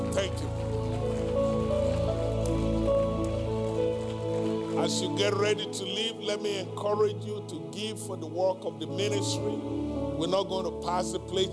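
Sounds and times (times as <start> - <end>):
audience clapping: 0.0 - 6.6
sustained keyboard chords: 0.0 - 11.5
speech: 4.8 - 11.5.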